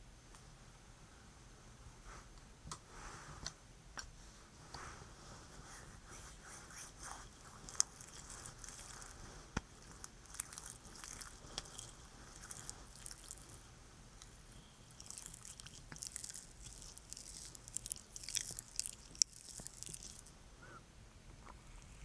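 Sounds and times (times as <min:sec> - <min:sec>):
low quiet hum: 0:00.0 - 0:22.0
sticky honey squishing in an ear massage: 0:07.0 - 0:13.6, 0:14.2 - 0:20.4.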